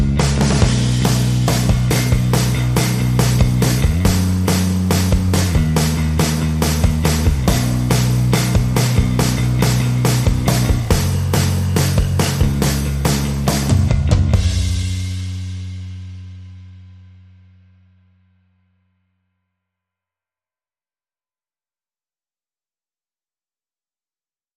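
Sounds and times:
drums: 0:00.0 - 0:17.7
bass: 0:00.0 - 0:19.7.

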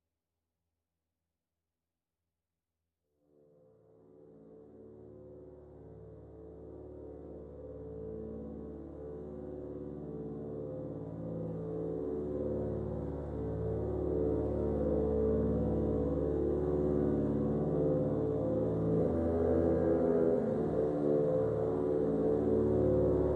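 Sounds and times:
orchestra: 0:07.1 - 0:23.3.

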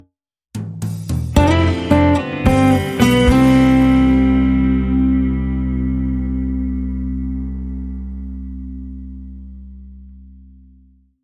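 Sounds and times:
acoustic harmonic ending: 0:01.4 - 0:09.9.

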